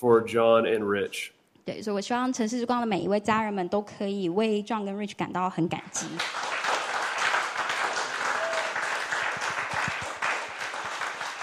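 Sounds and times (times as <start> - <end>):
speech: 0.0 - 6.5
audience applause: 6.1 - 11.4.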